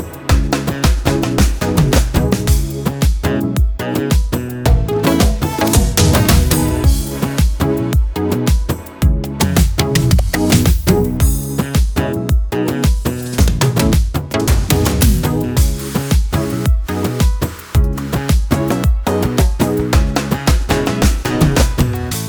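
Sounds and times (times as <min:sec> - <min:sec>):
bandari drum fill: 0:00.3 - 0:03.4, 0:04.1 - 0:12.0, 0:12.9 - 0:22.1.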